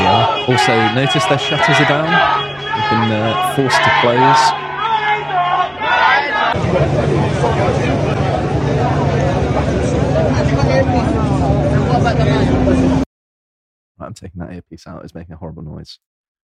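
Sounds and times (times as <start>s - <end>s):
large crowd of people outside: 0.0s - 13.0s
speech: 0.5s - 4.7s, 6.5s - 9.9s, 10.8s - 13.0s, 14.0s - 16.1s.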